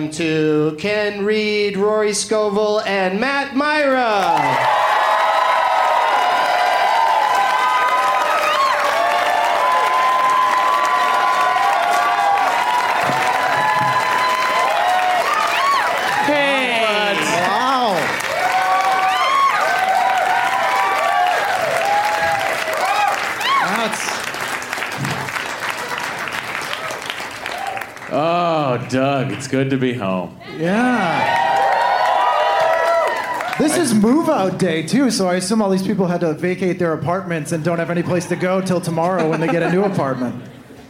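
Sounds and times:
speech: 0.0s - 4.8s, 28.9s - 31.2s, 33.6s - 40.5s
cheers and whoops: 4.1s - 24.2s, 26.8s - 27.9s, 30.4s - 33.9s
audience applause welcoming guests onto a live show: 4.2s - 29.6s, 30.7s - 34.4s
laughter: 38.1s - 40.8s.

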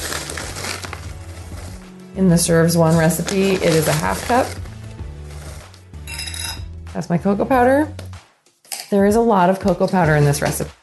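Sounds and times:
rolled oats poured into nonstick skillet: 0.0s - 2.1s, 2.7s - 6.0s
speech: 2.2s - 4.6s, 7.0s - 8.0s, 8.9s - 10.8s.

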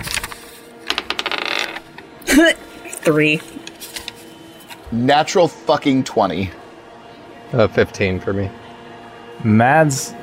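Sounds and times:
dice being rolled: 0.0s - 1.8s
speech: 2.4s - 3.7s, 4.9s - 6.6s, 7.5s - 8.6s, 9.4s - 10.2s.

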